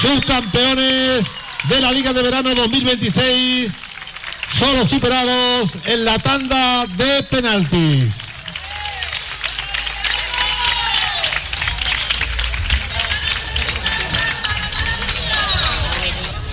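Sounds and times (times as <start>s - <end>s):
audience applause: 0.0s - 16.4s
speech: 0.1s - 3.8s, 4.5s - 8.3s.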